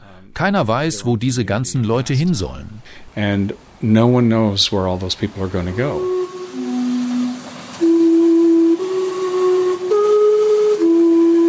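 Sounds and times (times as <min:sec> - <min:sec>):
soft steam hiss: 0:00.0 - 0:11.4
speech: 0:00.4 - 0:06.2
steam-powered clock tower whistles playing a tune in Gastown Vancouver: 0:05.4 - 0:11.4.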